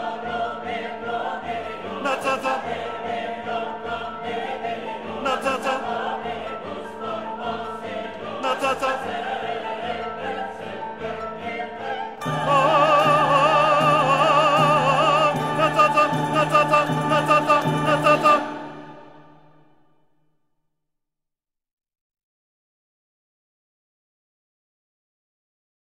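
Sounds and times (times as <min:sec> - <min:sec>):
bass choir voice singing: 0:00.0 - 0:19.6.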